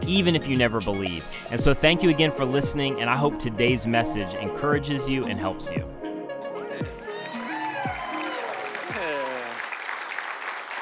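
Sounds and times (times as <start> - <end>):
speech: 0.1 - 6.0, 6.8 - 7.0
audience clapping: 6.8 - 10.8.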